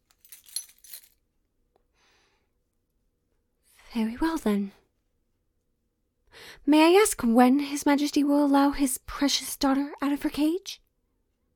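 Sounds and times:
keys jangling: 0.0 - 1.2
speech: 3.9 - 4.8, 6.6 - 10.8.

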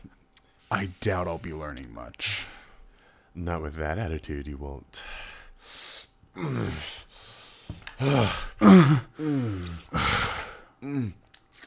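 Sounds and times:
speech: 0.7 - 2.6, 3.4 - 5.8, 6.4 - 11.2
person whimpering: 8.0 - 11.2.

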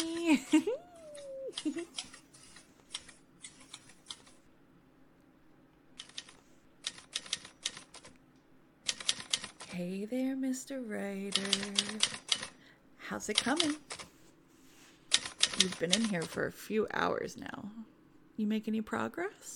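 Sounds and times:
speech: 0.3 - 0.9, 1.6 - 2.2, 9.8 - 12.3, 13.1 - 14.0, 15.6 - 19.5
keyboard typing: 1.2 - 4.4, 6.0 - 8.2, 8.8 - 9.7, 11.3 - 12.6, 15.1 - 16.4.

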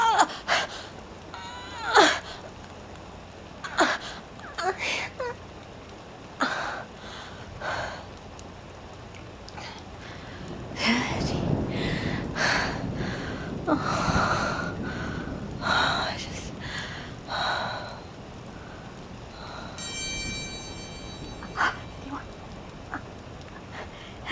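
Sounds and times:
rain: 0.0 - 24.3.

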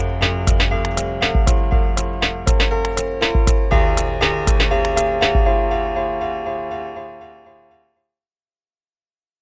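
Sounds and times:
music beat: 0.0 - 5.9.

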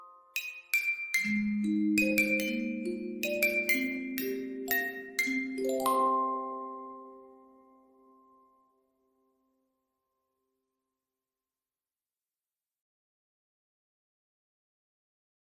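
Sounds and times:
lullaby music: 0.0 - 9.0.

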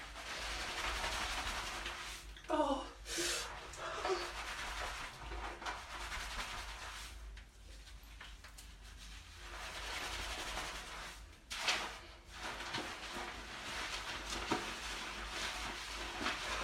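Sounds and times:
cold shower water running: 0.0 - 16.6
person moaning: 2.5 - 3.0.

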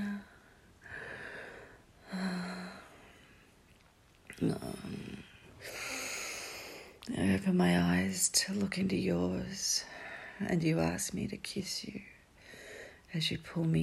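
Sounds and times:
heavy breathing: 0.3 - 3.5, 5.6 - 7.0
speech: 4.4 - 5.8, 7.2 - 12.2, 13.1 - 13.8.

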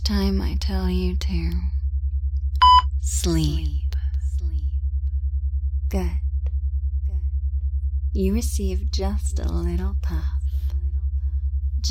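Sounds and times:
low pulsing hum: 0.0 - 11.8
speech: 0.1 - 1.8, 3.2 - 3.8, 5.9 - 6.2, 8.2 - 10.4
short electronic beep from a pushed button: 2.6 - 2.9.

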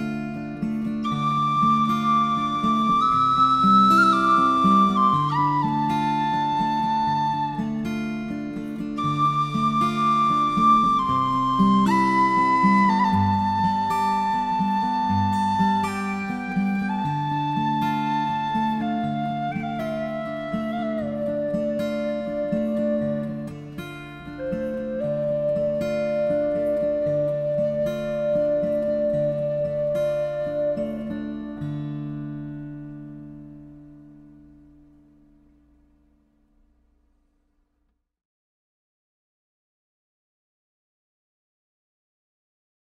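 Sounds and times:
guitar: 0.0 - 37.4
tin whistle: 1.0 - 7.9, 9.0 - 31.6.

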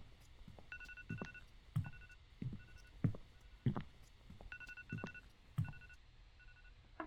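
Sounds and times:
alarm ringing: 0.6 - 3.9, 4.4 - 5.9.

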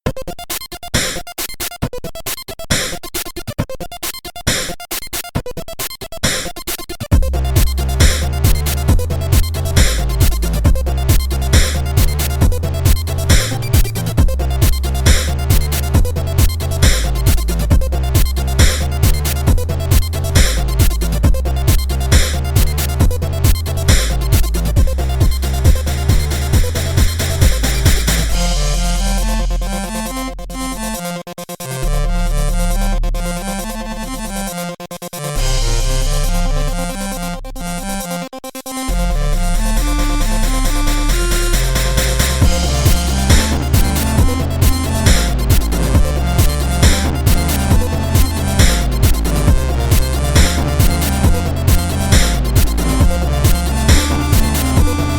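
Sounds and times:
remix music: 0.2 - 55.1.

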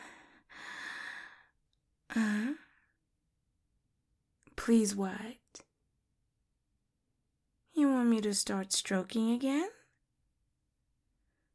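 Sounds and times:
heavy breathing: 0.0 - 1.5
speech: 4.7 - 5.4, 8.1 - 9.8.

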